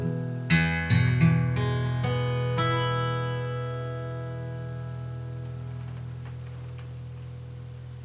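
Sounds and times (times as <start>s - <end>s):
light strum on a dreadnought guitar: 0.0s - 8.0s.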